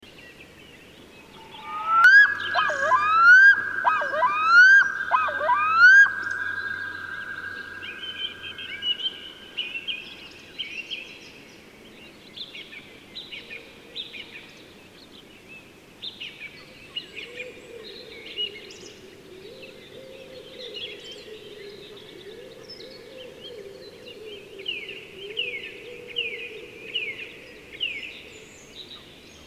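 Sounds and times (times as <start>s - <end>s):
black-throated loon giving short hoarse mid-pitched calls: 1.3s - 9.2s.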